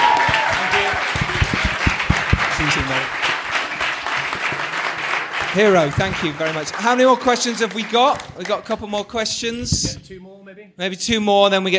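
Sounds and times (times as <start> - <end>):
audience applause: 0.0 - 9.1
speech: 5.5 - 11.7.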